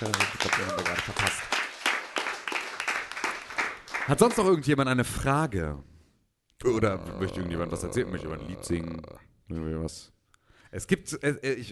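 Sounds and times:
speech: 0.0 - 1.5, 4.1 - 5.9, 6.6 - 11.7
audience applause: 0.0 - 4.4.

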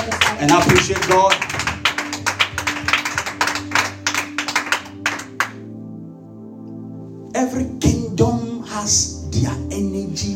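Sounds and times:
hands clapping: 0.0 - 5.7
speech: 0.4 - 1.5, 7.4 - 10.3.

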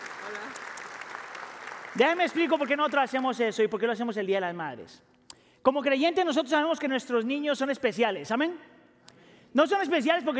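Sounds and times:
audience applause: 0.0 - 3.2
speech: 2.0 - 8.7, 9.5 - 10.3.

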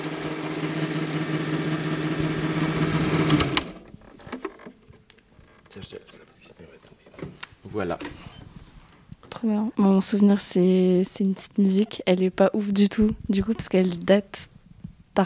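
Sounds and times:
Super 8 film projector running: 0.0 - 3.8
speech: 7.8 - 8.3, 9.4 - 14.5.

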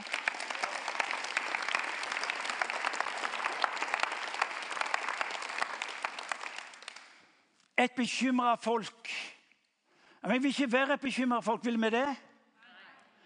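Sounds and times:
audience applause: 0.0 - 7.2
speech: 7.8 - 9.3, 10.2 - 12.3.

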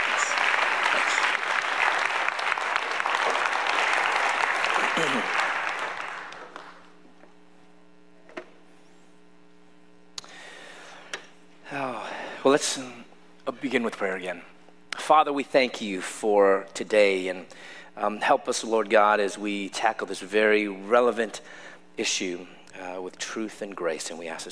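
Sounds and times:
audience applause: 0.0 - 6.9
speech: 12.5 - 13.0, 13.6 - 14.5, 15.1 - 24.4.

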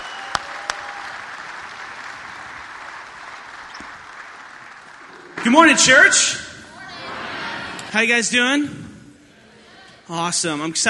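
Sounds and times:
audience applause: 0.0 - 6.0
speech: 5.4 - 6.5, 7.9 - 8.8, 10.1 - 10.8.

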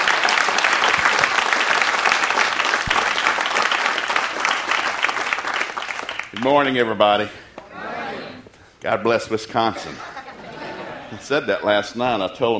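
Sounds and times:
audience applauding to welcome a guest speaker to a morning service: 0.0 - 6.4
speech: 6.4 - 7.4, 8.8 - 10.1, 11.2 - 12.5
laughter: 9.6 - 12.1.

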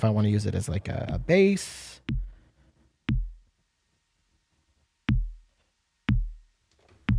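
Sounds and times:
speech: 0.0 - 2.2
drum module playing four-on-the-floor kick beat: 1.1 - 1.3, 2.1 - 2.4, 3.1 - 3.5, 5.1 - 5.5, 6.1 - 7.1.

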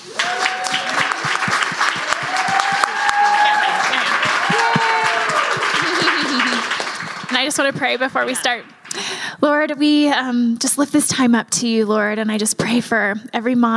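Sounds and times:
audience applause welcoming a woman speaker at a gathering for mothers: 0.0 - 9.0
speech: 7.5 - 13.7.

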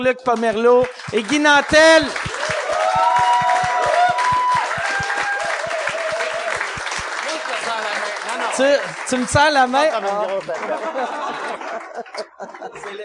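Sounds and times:
speech: 0.0 - 2.3, 8.6 - 11.4, 12.4 - 13.0
audience applause for guests: 0.4 - 13.0
low rhythmic thump: 2.2 - 5.6
cheers and whoops: 2.2 - 6.8
laughter: 10.2 - 13.0.

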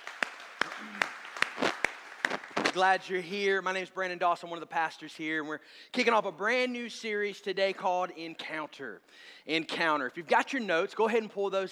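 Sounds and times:
church congregation clapping to welcome online guests: 0.0 - 3.0
speech: 2.8 - 11.7.

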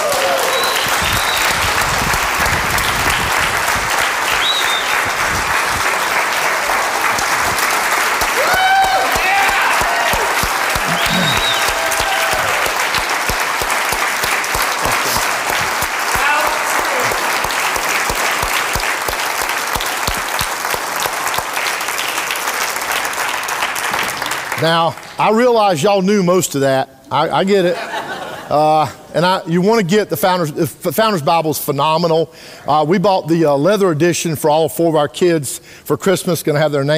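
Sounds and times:
audience applauding a speaker at a talk: 0.0 - 25.6
laughter: 10.7 - 11.7, 14.8 - 15.4, 27.6 - 29.0
speech: 24.6 - 27.9, 28.5 - 36.9.

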